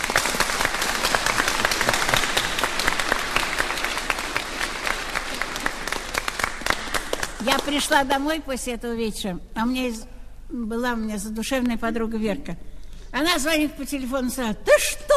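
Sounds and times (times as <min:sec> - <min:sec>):
audience applause: 0:00.0 - 0:07.7
speech: 0:07.5 - 0:15.1.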